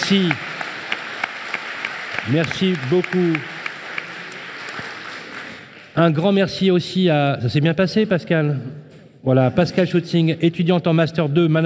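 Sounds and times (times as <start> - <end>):
audience applause: 0.0 - 6.0
speech: 0.1 - 0.5, 2.3 - 3.5, 6.0 - 11.6.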